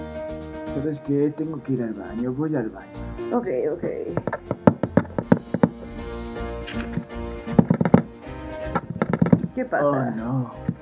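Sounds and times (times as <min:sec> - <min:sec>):
speech: 0:00.7 - 0:04.7, 0:09.6 - 0:10.8
hard knocking on a locked door: 0:04.2 - 0:05.8, 0:07.5 - 0:08.1, 0:08.8 - 0:09.5.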